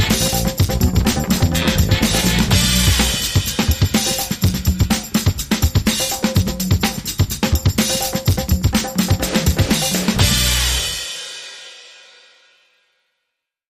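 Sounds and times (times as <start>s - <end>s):
funky beat: 0.0s - 11.0s.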